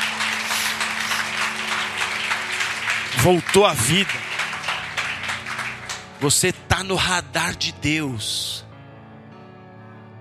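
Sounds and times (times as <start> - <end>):
audience applauding: 0.0 - 6.9
speech: 3.2 - 4.3, 6.2 - 8.7.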